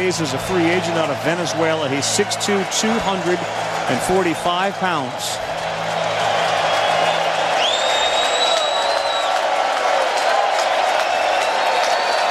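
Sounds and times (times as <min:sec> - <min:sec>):
speech: 0:00.0 - 0:05.6
stadium crowd cheering: 0:00.0 - 0:12.2
whistles and shouts from the stadium crowd: 0:06.7 - 0:09.4, 0:11.4 - 0:12.2.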